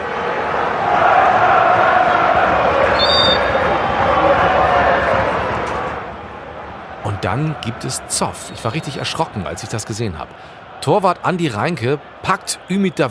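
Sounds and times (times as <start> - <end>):
football fans singing and chanting in a stadium: 0.0 - 13.0
high whistle-like tone: 3.0 - 3.7
speech: 7.3 - 13.0.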